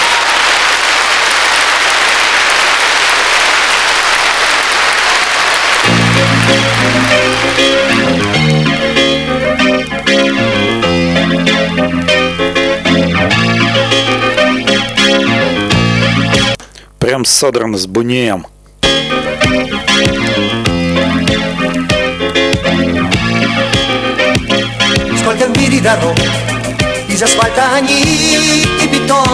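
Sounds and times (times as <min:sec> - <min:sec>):
live audience roaring and applauding on a recording: 0:00.0 - 0:09.0
loud music: 0:04.9 - 0:16.6, 0:18.8 - 0:29.3
speech: 0:17.4 - 0:18.6, 0:25.3 - 0:26.6, 0:27.2 - 0:29.3.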